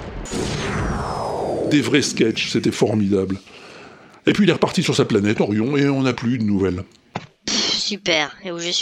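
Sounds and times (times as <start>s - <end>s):
teleportation sound effect: 0.3s - 3.2s
speech: 1.7s - 3.6s, 4.3s - 7.0s, 7.9s - 8.7s.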